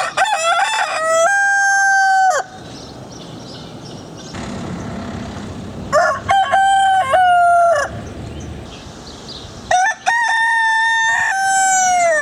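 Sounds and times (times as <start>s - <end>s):
male domestic chicken Gallus gallus domesticus crowing: 0.0s - 2.6s, 5.9s - 8.0s, 9.7s - 12.2s.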